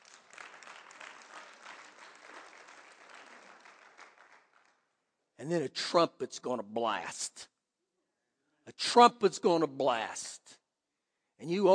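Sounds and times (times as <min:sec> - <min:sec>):
audience clapping: 0:00.0 - 0:05.0
speech: 0:05.4 - 0:07.5, 0:08.7 - 0:10.6, 0:11.4 - 0:11.7.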